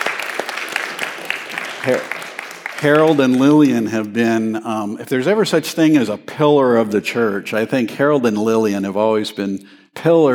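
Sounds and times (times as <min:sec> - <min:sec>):
scattered applause from a church congregation: 0:00.0 - 0:03.8
speech: 0:01.8 - 0:02.2, 0:02.8 - 0:10.3.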